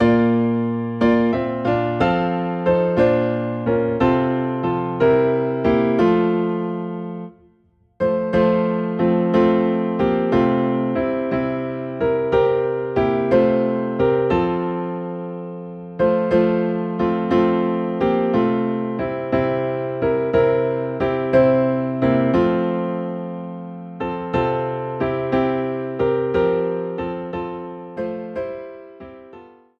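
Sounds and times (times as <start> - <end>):
piano playing in F: 0.0 - 29.7.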